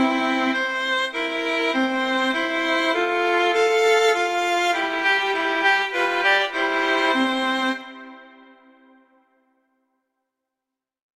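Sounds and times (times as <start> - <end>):
duet playing a minuet allegretto: 0.0 - 8.4.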